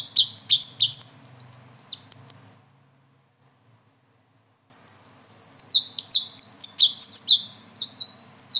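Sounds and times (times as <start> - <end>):
leafbird singing: 0.0 - 2.6, 4.7 - 8.5.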